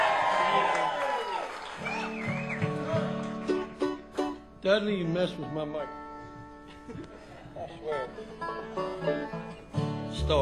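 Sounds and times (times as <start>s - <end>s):
audience cheering: 0.0s - 3.4s
speech: 4.6s - 6.0s, 6.9s - 9.5s, 10.2s - 10.4s.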